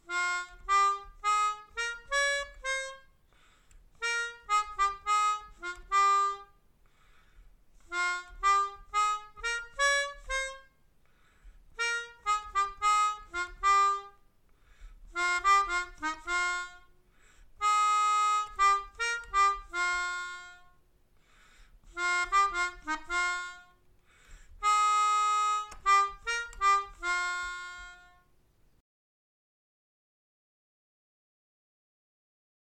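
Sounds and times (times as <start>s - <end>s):
melodica: 0.0s - 6.6s, 7.7s - 20.8s, 21.8s - 28.4s.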